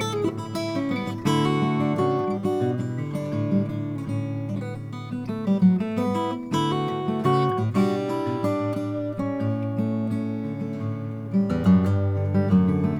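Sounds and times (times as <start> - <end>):
Olson SJ Brazilian rosewood guitar: 0.0 - 12.9.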